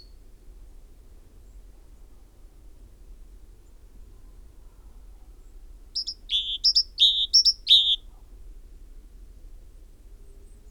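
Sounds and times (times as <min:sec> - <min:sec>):
great tit singing: 0:06.0 - 0:08.0.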